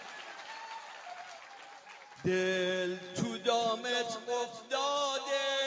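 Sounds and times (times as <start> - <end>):
faint audience clapping: 0.0 - 3.4
speech: 2.2 - 5.5.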